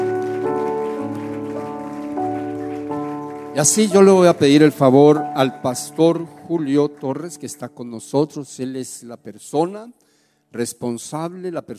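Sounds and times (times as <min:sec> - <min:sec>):
audience applauding: 0:00.0 - 0:07.9
speech: 0:03.6 - 0:11.7.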